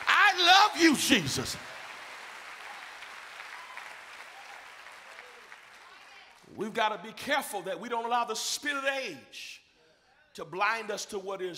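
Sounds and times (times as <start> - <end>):
audience clapping hands: 0.0 - 6.6
speech: 0.7 - 1.7, 6.6 - 9.6, 10.4 - 11.5.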